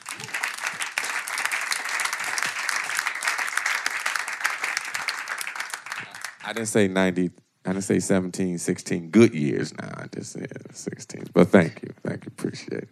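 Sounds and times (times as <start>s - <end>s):
audience applause: 0.0s - 6.8s
speech: 6.5s - 12.8s.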